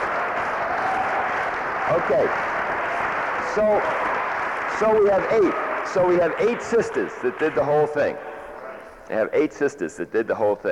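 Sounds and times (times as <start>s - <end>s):
crowd applauding: 0.0s - 9.0s
speech: 1.9s - 2.5s, 3.5s - 8.3s, 9.1s - 10.7s.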